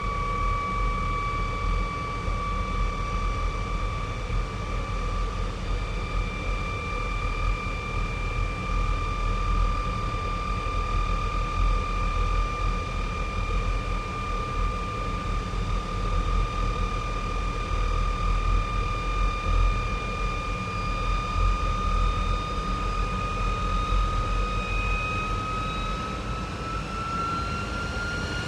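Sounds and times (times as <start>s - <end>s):
MiG-15 UTI jet aircraft departing: 0.0s - 28.4s.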